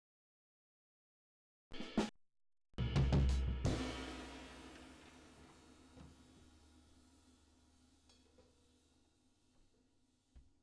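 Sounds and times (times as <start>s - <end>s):
drums with reverb: 2.8s - 7.3s.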